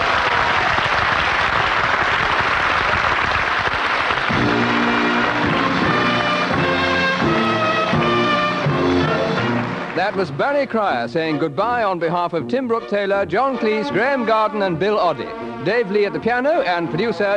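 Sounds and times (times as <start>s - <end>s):
audience applause: 0.0s - 10.8s
speech: 10.2s - 17.3s.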